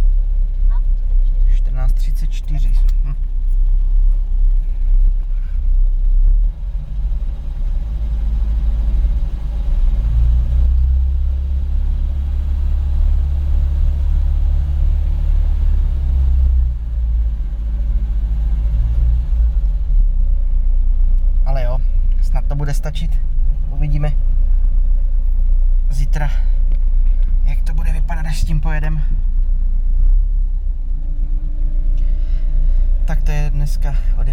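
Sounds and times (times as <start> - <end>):
car engine idling: 0.0 - 34.3
speech: 22.8 - 23.2, 33.6 - 34.3.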